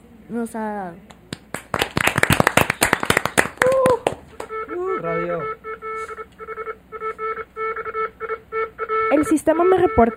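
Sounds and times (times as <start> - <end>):
speech: 0.3 - 1.2, 5.0 - 7.5, 9.1 - 10.1
applause: 1.3 - 4.5.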